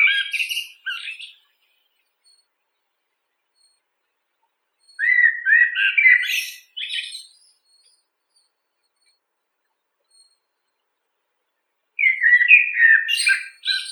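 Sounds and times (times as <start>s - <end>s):
blackbird Turdus merula: 0.0s - 2.5s, 4.4s - 9.2s, 12.0s - 13.9s.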